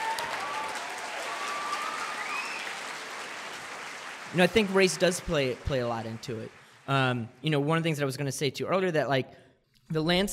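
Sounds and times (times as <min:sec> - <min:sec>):
audience applause: 0:00.0 - 0:07.3
speech: 0:04.3 - 0:10.3.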